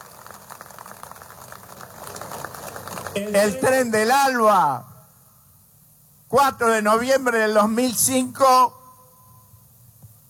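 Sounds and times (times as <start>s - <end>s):
crowd applause: 0.0s - 3.6s
speech: 3.2s - 4.9s, 6.3s - 8.8s.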